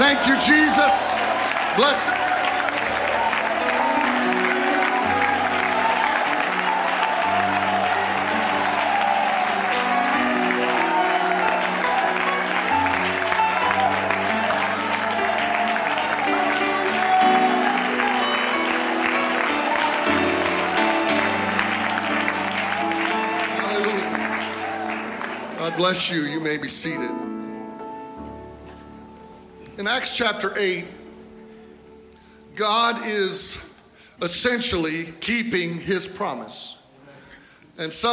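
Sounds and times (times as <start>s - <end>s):
crowd applauding: 0.0s - 27.0s
low sustained organ-like chords: 0.0s - 33.6s
speech: 0.1s - 3.0s, 25.9s - 27.2s, 29.8s - 31.0s, 32.6s - 36.8s, 37.8s - 38.1s.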